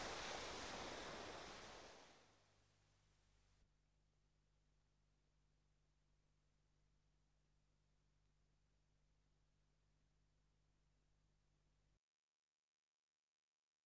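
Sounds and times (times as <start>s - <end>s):
sea backwash on a beach: 0.0s - 2.2s.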